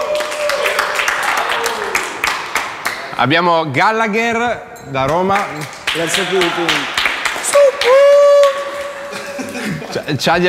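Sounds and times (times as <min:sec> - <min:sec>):
audience applause: 0:00.0 - 0:03.1, 0:05.7 - 0:09.7
speech: 0:03.2 - 0:07.0, 0:10.0 - 0:10.4
laughter: 0:08.7 - 0:10.3.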